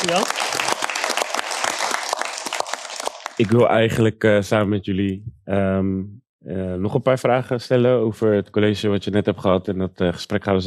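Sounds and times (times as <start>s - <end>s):
speech: 0.0s - 0.8s, 3.4s - 10.6s
audience applause: 0.0s - 3.7s.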